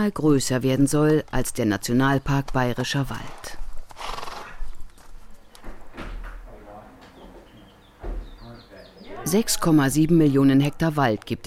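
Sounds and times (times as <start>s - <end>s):
speech: 0.0s - 4.2s, 9.3s - 11.4s
horse hoof clops and scuffs on a farm: 2.3s - 5.8s
horse snorting whinny: 3.9s - 4.6s
faint voices murmuring: 6.5s - 9.8s
thin, high bird chirps: 7.1s - 9.9s.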